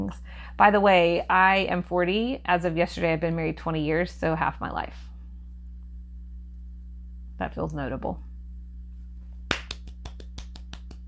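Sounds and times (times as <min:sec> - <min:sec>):
speech: 0:00.0 - 0:05.1, 0:07.4 - 0:08.3
a single person clapping: 0:09.5 - 0:11.0.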